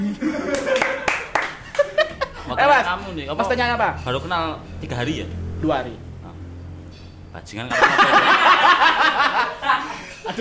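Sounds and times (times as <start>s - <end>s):
laughter: 0.0s - 3.0s, 7.7s - 10.3s
hand clapping: 0.4s - 2.1s
speech: 2.6s - 6.0s, 7.4s - 10.3s.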